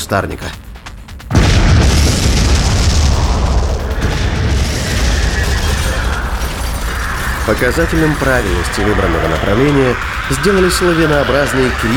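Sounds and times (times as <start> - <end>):
speech: 0.1 - 0.6, 7.5 - 11.9
explosion of explosive capsules thrown into a corridor: 1.3 - 10.3
crackling debris: 1.4 - 11.9
sustained deep rumbling roar: 1.7 - 11.9.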